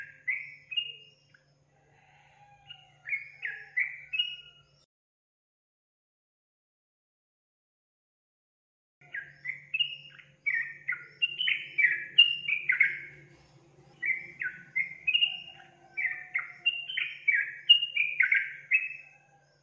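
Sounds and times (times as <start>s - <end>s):
Yellow-vented Bulbul song: 0.0s - 1.4s, 9.0s - 19.6s.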